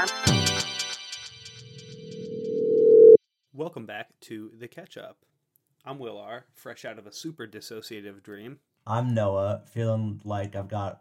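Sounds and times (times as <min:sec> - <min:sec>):
phone ringtone: 0:02.0 - 0:03.2
speech: 0:03.6 - 0:11.0.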